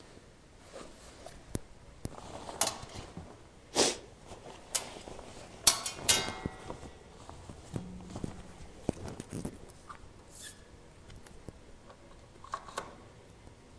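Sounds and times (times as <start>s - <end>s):
laundry soundscape: 0.0s - 10.5s.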